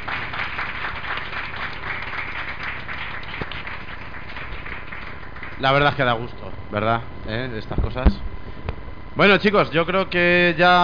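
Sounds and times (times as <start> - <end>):
audience applause: 0.0 - 6.1
speech: 5.6 - 8.2, 9.2 - 10.8.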